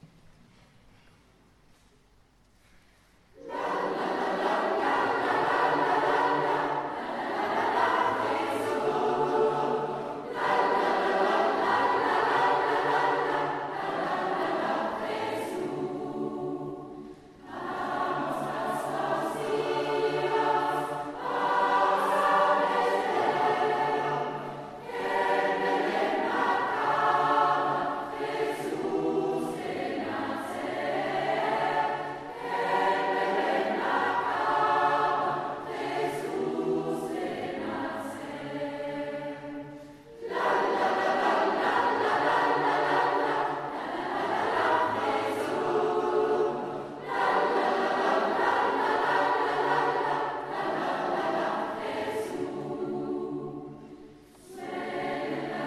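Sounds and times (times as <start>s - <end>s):
choirs singing: 3.3s - 55.6s.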